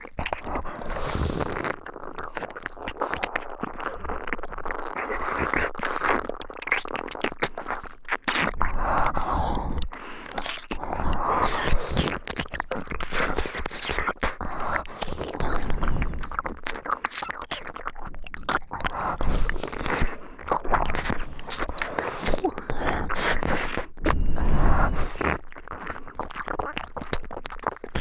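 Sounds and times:
ear licking ASMR loop: 0.0s - 27.9s.

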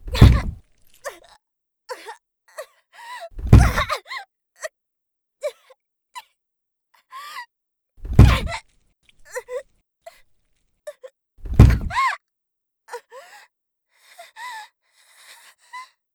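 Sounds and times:
kick to the face: 0.0s - 0.6s, 8.0s - 8.6s, 11.4s - 12.0s.

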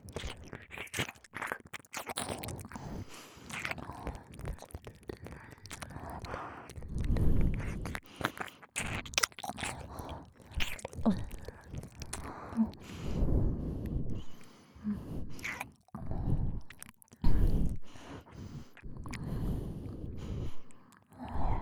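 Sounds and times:
ear licking: 0.0s - 21.5s
double nose breathing: 5.1s - 8.9s, 9.7s - 21.5s.

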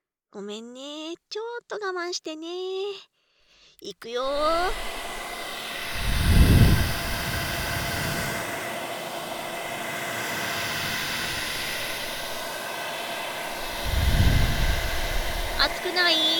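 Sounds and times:
speech: 0.3s - 3.1s, 3.8s - 5.0s, 15.6s - 16.3s
hair dryer blowing: 4.2s - 16.3s.

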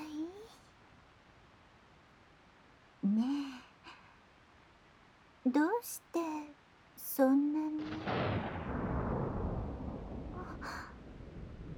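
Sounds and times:
speech: 5.5s - 6.3s, 7.2s - 8.2s
loud thunderclap: 7.8s - 11.7s.

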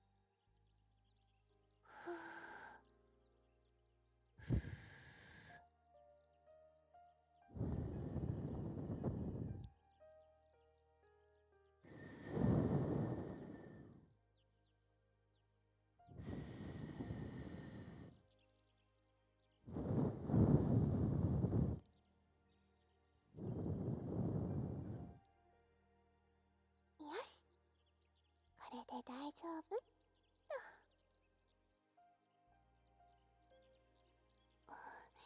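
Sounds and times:
ASMR blowing into the listener's ear: 4.4s - 5.6s, 7.6s - 9.7s, 11.9s - 14.1s, 16.2s - 18.2s, 19.7s - 21.8s, 23.4s - 25.2s
speech: 28.7s - 29.9s.

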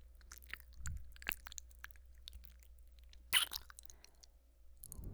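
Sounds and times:
ear licking: 0.2s - 4.2s
ear nibbling: 0.2s - 5.0s
ear kissing: 3.4s - 3.6s.

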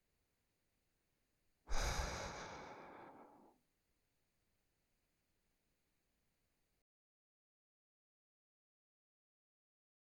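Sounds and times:
person breathing through the nose while sleeping: 1.7s - 3.5s.

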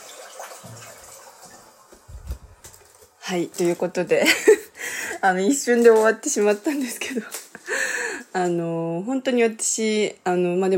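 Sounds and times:
toilet flushing: 0.0s - 2.4s
speech: 3.3s - 7.8s, 8.4s - 10.7s.

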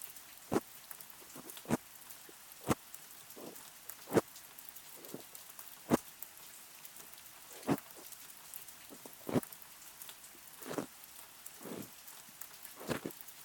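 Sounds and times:
rain: 0.0s - 13.4s
ear massage sounds: 1.2s - 1.8s, 2.6s - 4.2s, 5.0s - 5.3s, 7.5s - 8.1s, 8.9s - 9.5s, 10.4s - 10.9s, 11.6s - 11.9s, 12.8s - 13.1s.

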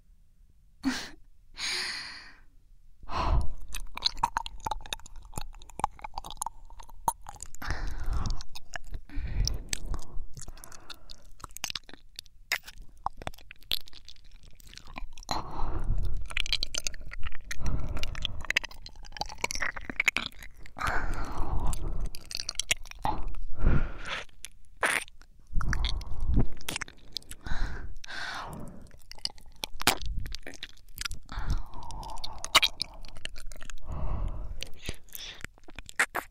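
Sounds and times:
wet ASMR mouth sounds of a tongue rubbing against an ear: 3.1s - 36.2s
breathy sighs and inhales: 7.6s - 11.4s, 15.3s - 16.5s, 17.5s - 18.7s, 20.8s - 22.3s, 23.0s - 24.4s, 25.5s - 29.0s, 31.2s - 35.5s.

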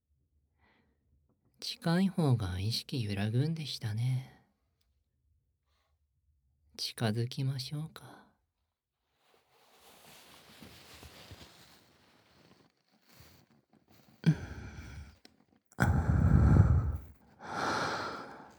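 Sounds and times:
speech: 1.7s - 4.3s, 6.8s - 8.2s
soft rustling: 9.0s - 15.7s
hot moist breathing into the ear: 14.2s - 15.2s, 15.8s - 18.5s.

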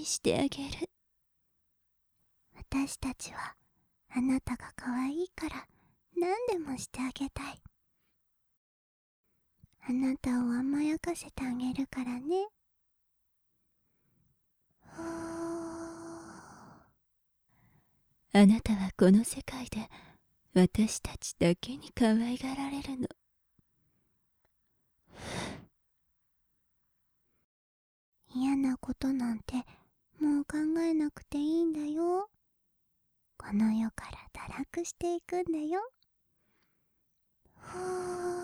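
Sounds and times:
succubus whispering: 0.0s - 0.9s, 2.6s - 7.7s, 9.8s - 12.5s, 18.4s - 19.9s, 20.6s - 23.1s, 28.3s - 32.3s, 33.4s - 35.9s
succubus breathing: 14.8s - 16.9s, 17.5s - 18.0s, 19.9s - 20.2s, 25.1s - 25.7s, 37.5s - 38.4s.

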